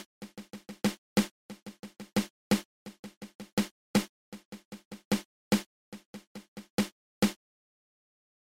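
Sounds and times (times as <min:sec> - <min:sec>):
six stroke drum roll played open close open: 0:00.0 - 0:07.4.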